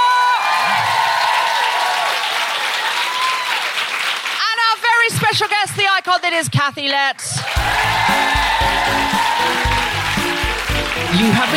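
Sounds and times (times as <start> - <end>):
cheers and whoops: 0.0 - 3.9, 7.4 - 11.5
large crowd applauding: 0.0 - 5.6, 7.4 - 11.5
speech: 5.3 - 9.6, 11.1 - 11.5.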